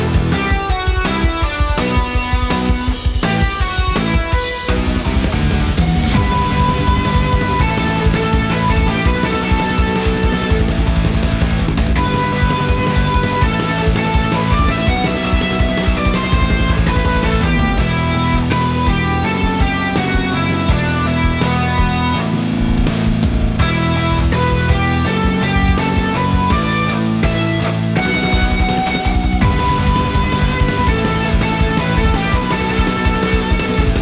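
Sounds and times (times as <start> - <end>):
electric guitar music for a boss battle: 0.0 - 34.0.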